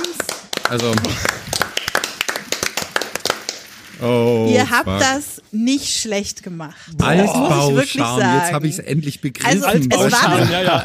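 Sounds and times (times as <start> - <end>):
small group hand clapping: 0.0 - 3.8
speech: 0.7 - 1.6, 4.0 - 10.8
laughter: 9.5 - 10.8.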